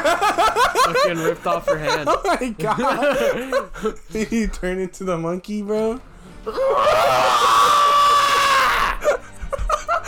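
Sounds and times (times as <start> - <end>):
laughter: 0.0 - 4.0, 8.9 - 10.0
speech: 1.0 - 7.5
person screaming, mimicking being struck by a train: 6.5 - 9.1.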